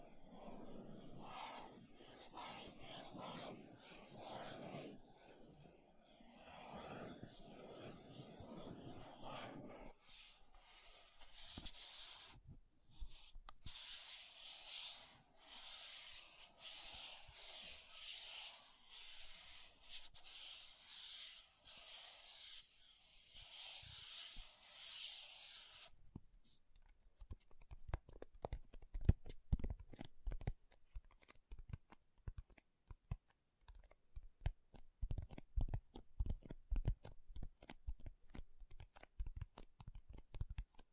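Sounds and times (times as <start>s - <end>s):
makeup items scratchy rubbing: 0.0s - 25.9s
makeup items taps and clicks: 26.8s - 40.9s.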